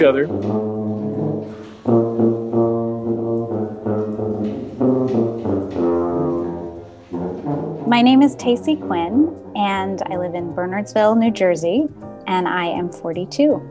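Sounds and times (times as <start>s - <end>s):
speech: 0.0s - 0.8s, 8.0s - 13.6s
tuba playing a slow Christmas carol: 0.0s - 10.9s.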